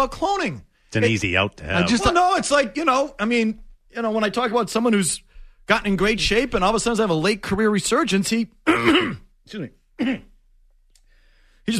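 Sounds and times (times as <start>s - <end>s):
speech: 0.0s - 10.3s
person clearing throat: 8.6s - 9.4s, 10.0s - 10.4s.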